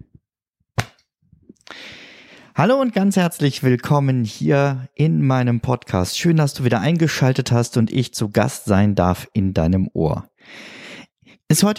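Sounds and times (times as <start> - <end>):
single hand clap: 0.8 - 1.0
speech: 2.6 - 10.8, 11.5 - 11.7.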